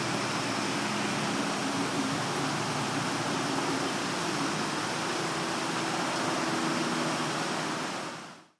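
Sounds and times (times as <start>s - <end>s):
distant traffic: 0.0s - 8.5s.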